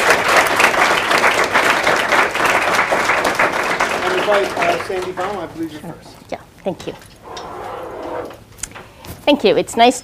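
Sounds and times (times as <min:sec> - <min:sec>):
audience applause welcoming two speakers at a talk: 0:00.0 - 0:05.6
speech: 0:04.3 - 0:07.1, 0:09.3 - 0:10.0.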